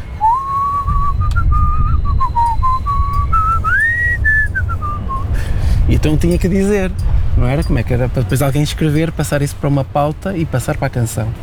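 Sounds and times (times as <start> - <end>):
person whistling a melody: 0.0 - 5.4
low hum: 0.0 - 11.4
speech: 6.0 - 11.4.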